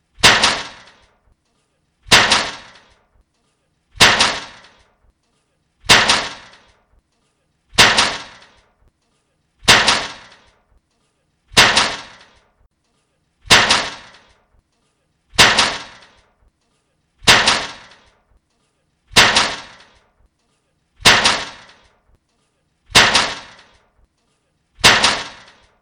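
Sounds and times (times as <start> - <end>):
boom: 0.2 - 1.0, 2.1 - 2.9, 4.0 - 4.8, 5.9 - 6.7, 7.8 - 8.6, 9.6 - 10.5, 11.5 - 12.4, 13.5 - 14.3, 15.4 - 16.2, 17.2 - 18.1, 19.1 - 20.0, 21.0 - 21.9, 22.9 - 23.8, 24.8 - 25.7.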